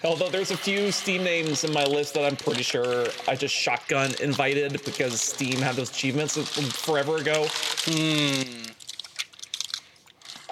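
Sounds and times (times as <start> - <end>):
speech: 0.0 - 8.8
chewing and crunching while eating dinner: 0.6 - 10.4
short hummed voice tone: 7.9 - 8.8.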